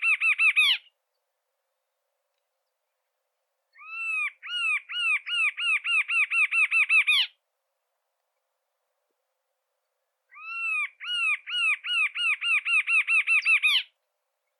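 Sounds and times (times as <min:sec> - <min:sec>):
song of the red-capped antshrike: 0:00.0 - 0:07.4, 0:09.8 - 0:14.5.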